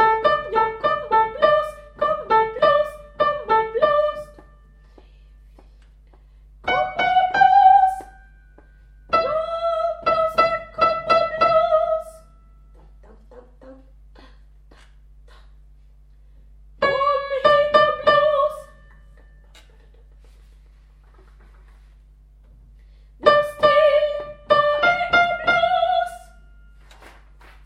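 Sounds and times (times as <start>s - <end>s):
soprano voice: 0.0s - 4.4s, 6.7s - 8.2s, 9.1s - 15.6s, 16.8s - 20.0s, 23.2s - 26.4s.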